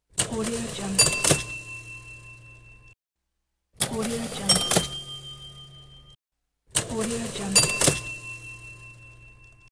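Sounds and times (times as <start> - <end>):
cash register: 0.4 - 1.8, 3.8 - 6.2, 7.0 - 9.0.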